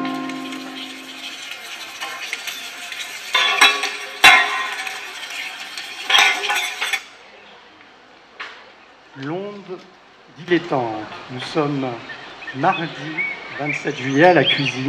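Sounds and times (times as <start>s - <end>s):
cutlery and dishes clinking in kitchen: 0.1s - 7.1s
plates crashing: 0.1s - 7.1s
steady bustle: 0.1s - 7.2s
speech: 10.7s - 14.8s.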